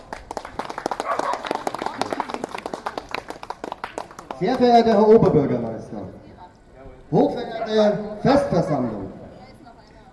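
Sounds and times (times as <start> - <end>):
audience applause: 0.0 - 4.6
speech: 4.4 - 6.2, 7.1 - 9.0.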